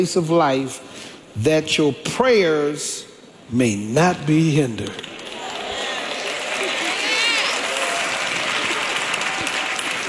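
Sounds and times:
speech: 0.0s - 5.1s
crowd applauding: 5.0s - 10.0s.

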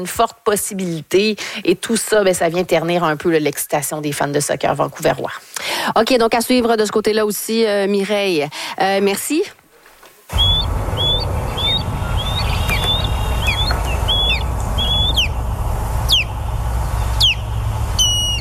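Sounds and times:
speech: 0.0s - 9.6s, 10.3s - 11.0s
low rumble: 10.3s - 18.4s
ospreys crying: 10.3s - 18.4s.

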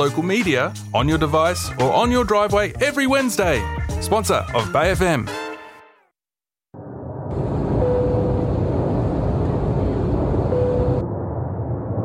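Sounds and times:
speech: 0.0s - 5.4s
airplane descending toward Byron Ballina Gateway Airport: 6.8s - 12.0s.

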